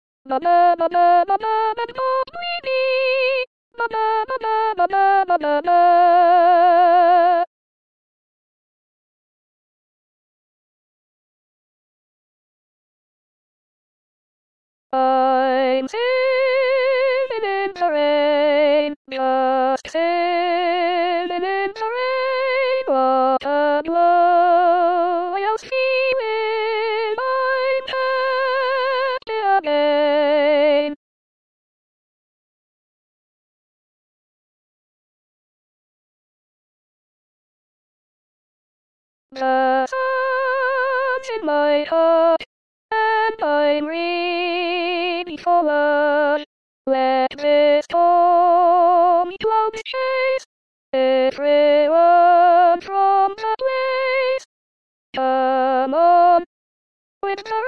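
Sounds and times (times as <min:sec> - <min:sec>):
soprano singing: 0:00.3 - 0:07.5, 0:15.0 - 0:31.0, 0:39.4 - 0:50.4, 0:51.0 - 0:54.5, 0:55.2 - 0:56.5, 0:57.2 - 0:57.6.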